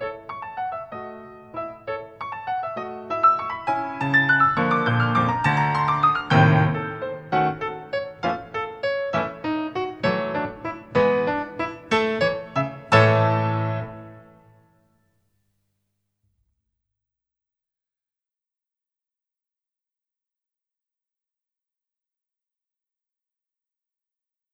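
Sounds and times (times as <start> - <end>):
classical dance music in six-eight time: 0.0 - 14.6.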